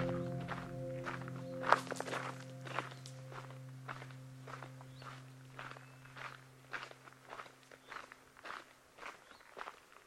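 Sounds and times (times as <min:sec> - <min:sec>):
low even hum: 0:00.0 - 0:07.4
footsteps crunching at Ramsey Canyon Preserve: 0:00.0 - 0:10.0.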